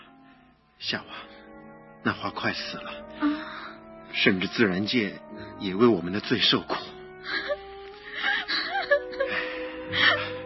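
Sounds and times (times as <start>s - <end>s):
speech: 0.8s - 1.4s, 2.0s - 3.5s, 4.2s - 7.4s
woman crying sadly: 7.2s - 10.4s.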